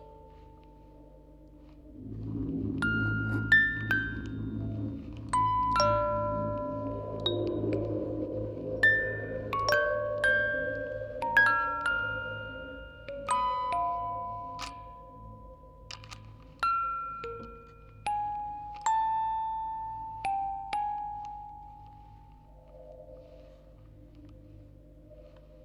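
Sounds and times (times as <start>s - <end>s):
four music boxes playing recorded on tape: 2.8s - 22.6s.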